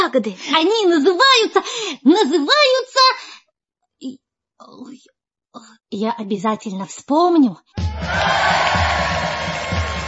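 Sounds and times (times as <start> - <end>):
speech: 0.0 - 3.4, 4.0 - 9.2
huge crowd clamoring around a poet's monument: 7.8 - 10.0.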